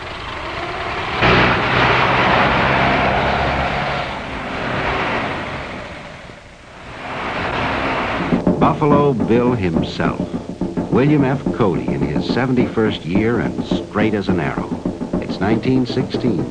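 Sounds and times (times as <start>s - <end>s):
race cars speeding at an auto race: 0.0s - 8.4s
speech: 8.6s - 14.7s, 15.4s - 16.4s.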